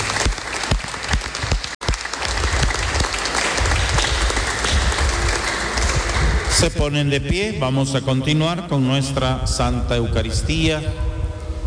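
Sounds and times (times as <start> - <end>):
audience applauding: 0.0 - 6.7
speech: 6.6 - 11.1.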